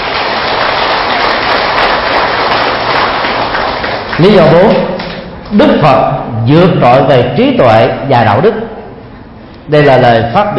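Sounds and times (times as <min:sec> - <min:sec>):
audience applause: 0:00.0 - 0:05.2
speech: 0:04.2 - 0:08.6, 0:09.7 - 0:10.5.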